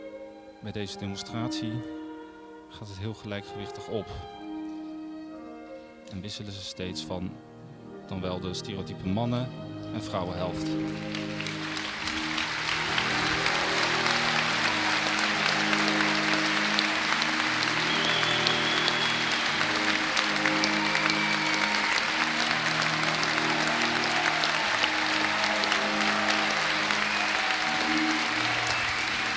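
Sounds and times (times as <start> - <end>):
speech: 0.6 - 2.0, 2.7 - 4.4, 6.1 - 7.5, 8.1 - 11.7
audience applause after an English waltz dance demonstration: 10.6 - 29.3.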